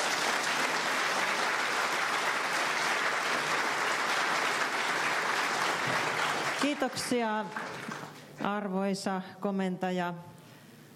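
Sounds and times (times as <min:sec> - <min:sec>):
audience applause after a talk on submarines: 0:00.0 - 0:08.2
speech: 0:06.8 - 0:10.3.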